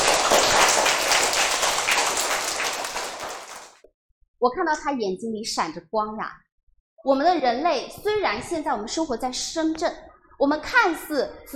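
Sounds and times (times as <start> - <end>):
audience applause: 0.0 - 3.8
speech: 4.4 - 6.4, 7.0 - 11.5.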